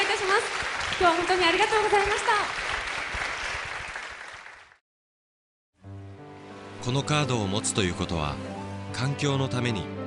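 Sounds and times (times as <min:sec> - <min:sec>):
audience applause: 0:00.0 - 0:04.8
speech: 0:00.4 - 0:02.8, 0:06.8 - 0:10.0.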